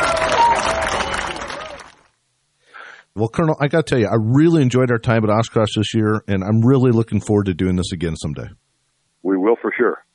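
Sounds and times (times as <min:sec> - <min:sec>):
crowd applause at an airport greeting a serviceman: 0:00.0 - 0:02.1
speech: 0:03.2 - 0:08.6, 0:09.2 - 0:10.1.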